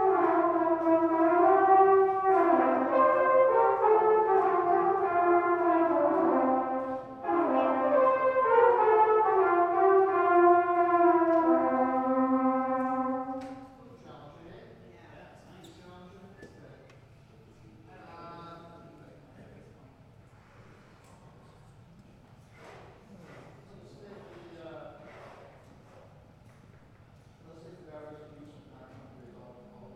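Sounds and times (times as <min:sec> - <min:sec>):
brass band playing a parade tune: 0:00.0 - 0:13.7.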